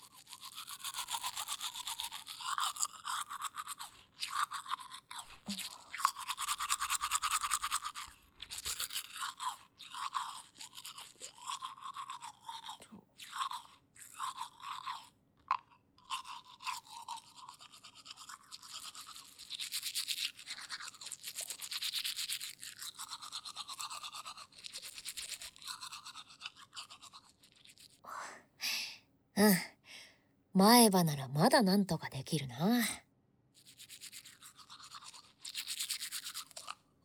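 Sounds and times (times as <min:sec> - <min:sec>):
toothbrush scrubbing teeth: 0:00.0 - 0:28.0, 0:33.6 - 0:37.0
speech: 0:30.6 - 0:33.0.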